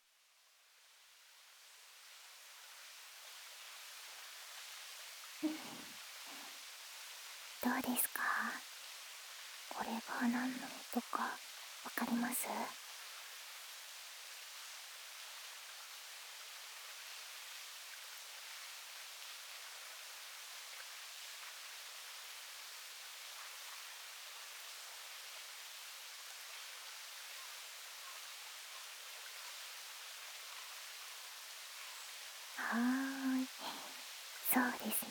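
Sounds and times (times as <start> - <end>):
waterfall: 0.0 - 35.0
speech: 5.4 - 5.9, 7.6 - 8.7, 9.8 - 12.8, 32.8 - 33.0.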